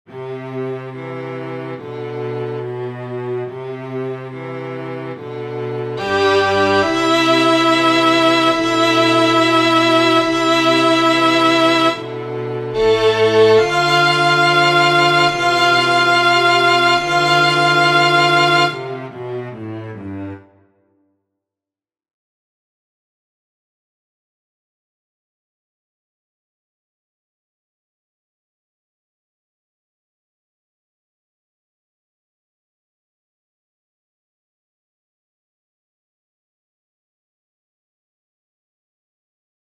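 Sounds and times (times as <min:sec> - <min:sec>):
string quartet playing: 0:00.1 - 0:20.7.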